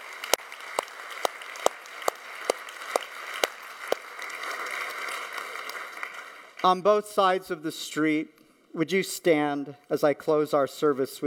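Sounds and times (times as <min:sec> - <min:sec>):
audience applause: 0:00.0 - 0:06.6
speech: 0:06.6 - 0:11.2.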